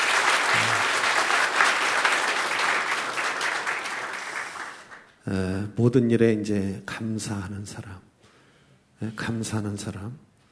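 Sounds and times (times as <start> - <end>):
audience applauding the choir: 0.0 - 5.1
speech: 5.3 - 8.1, 9.0 - 10.3.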